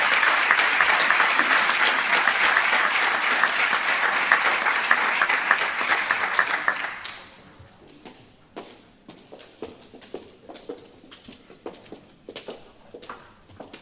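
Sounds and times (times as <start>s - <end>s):
audience applause at a ceremony: 0.0s - 7.4s.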